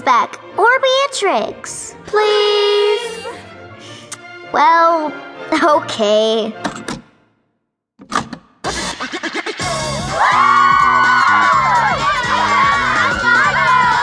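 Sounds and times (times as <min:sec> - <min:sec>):
speech: 0:00.0 - 0:03.3, 0:04.5 - 0:06.9
upbeat dance music with thumping beat: 0:08.7 - 0:14.0
girls hooting, whooping and squealing: 0:09.7 - 0:14.0.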